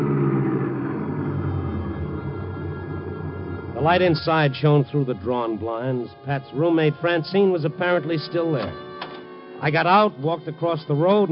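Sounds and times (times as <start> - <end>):
car engine rumble while driving along a road: 0.0 - 6.4
speech: 3.8 - 8.9, 9.6 - 11.3.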